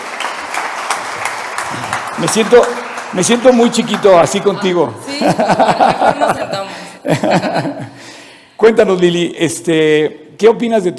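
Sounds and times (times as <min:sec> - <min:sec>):
audience applause: 0:00.0 - 0:06.8
speech: 0:02.2 - 0:08.0, 0:08.6 - 0:10.9
laughter: 0:03.3 - 0:08.0.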